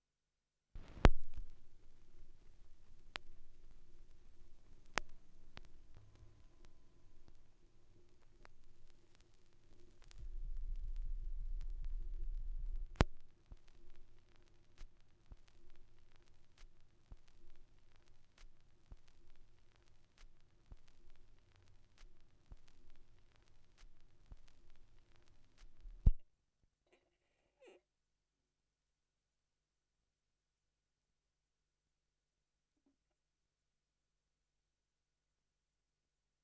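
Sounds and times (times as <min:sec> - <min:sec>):
vinyl record noise: 0:00.8 - 0:26.2.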